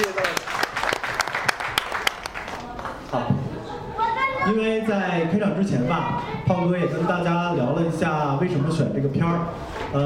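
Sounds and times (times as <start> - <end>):
audience applause: 0.0 - 3.0
speech: 4.5 - 10.0.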